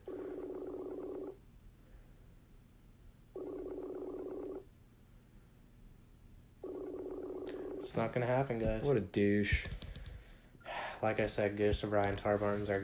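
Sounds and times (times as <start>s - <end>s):
warbling underwater-like phone ringback tone: 0.1s - 1.4s, 3.4s - 4.6s, 6.6s - 7.9s
speech: 8.0s - 9.8s, 11.0s - 12.8s.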